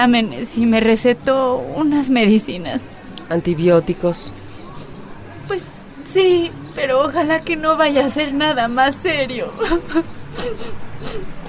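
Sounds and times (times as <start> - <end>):
speech: 0.0 - 4.4, 5.5 - 11.4
woman crying: 9.5 - 11.4.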